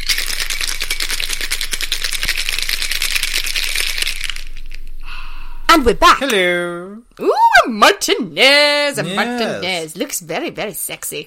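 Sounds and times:
cocktail shaker rattling with ice: 0.0s - 4.8s
speech: 5.8s - 11.2s.

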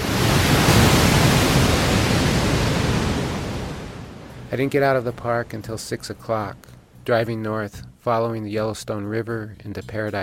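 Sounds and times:
waterfall roaring: 0.0s - 5.6s
speech: 4.5s - 10.2s.

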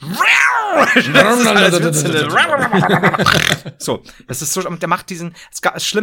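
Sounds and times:
speech: 0.2s - 6.0s
laughter: 0.7s - 3.8s
man loudly imitating snoring with his voice: 3.2s - 3.7s.

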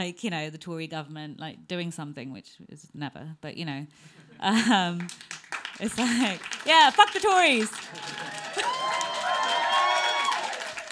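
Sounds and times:
speech: 0.0s - 9.2s
audience cheering: 5.9s - 10.8s.

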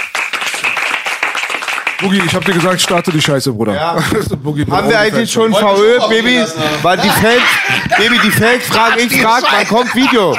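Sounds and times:
applause: 0.0s - 3.4s
speech: 2.0s - 10.3s
laughter: 5.5s - 10.3s.

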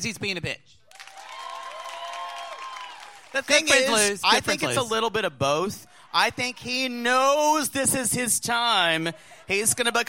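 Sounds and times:
speech: 0.0s - 0.8s, 3.3s - 10.0s
audience applause: 0.9s - 4.7s.

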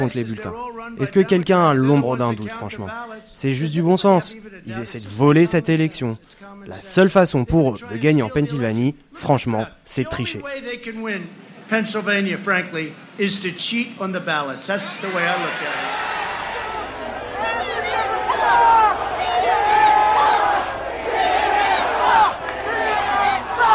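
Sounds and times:
speech: 0.0s - 16.2s
rally crowd chanting slogan: 15.4s - 23.7s.

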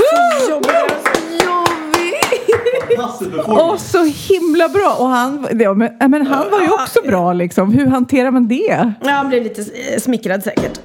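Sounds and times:
hand clapping: 0.0s - 3.1s
laughter: 1.5s - 3.9s
speech: 3.1s - 10.8s.

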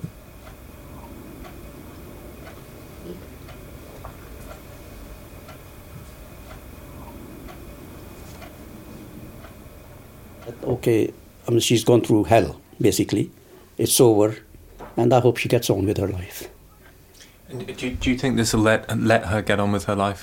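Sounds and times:
clock ticking: 0.0s - 10.7s
speech: 10.6s - 16.5s, 17.8s - 20.2s.

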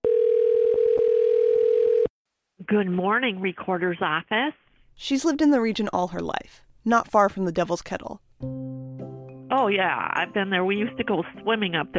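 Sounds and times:
telephone line tone as a call goes through: 0.0s - 2.1s
speech: 2.7s - 8.6s, 9.7s - 11.9s.

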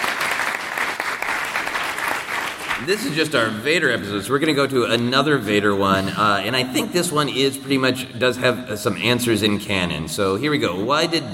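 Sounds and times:
round of applause: 0.0s - 3.0s
speech: 2.8s - 11.3s.

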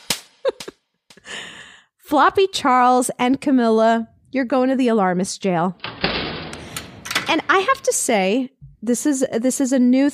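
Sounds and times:
slap sound effect: 0.0s - 0.8s
speech: 2.1s - 5.9s, 7.3s - 10.1s.

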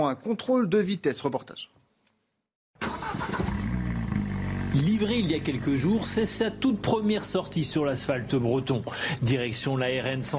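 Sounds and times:
speech: 0.0s - 1.8s, 4.7s - 10.3s
250-horsepower Alpine sports car of the French gendarmerie on the N165: 3.4s - 9.0s.

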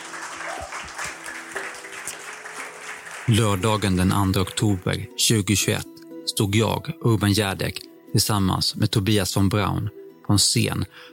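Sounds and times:
applause: 0.0s - 4.7s
speech: 3.3s - 11.1s.

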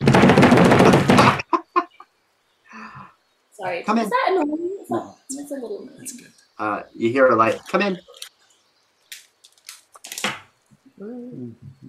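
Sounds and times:
vigorous knocking: 0.0s - 1.4s
speech: 3.6s - 8.2s, 11.0s - 11.8s.

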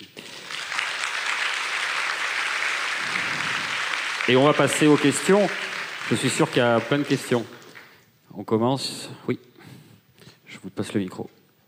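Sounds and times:
audience applause: 0.0s - 8.0s
speech: 4.3s - 7.6s, 8.4s - 9.5s, 10.5s - 11.4s.

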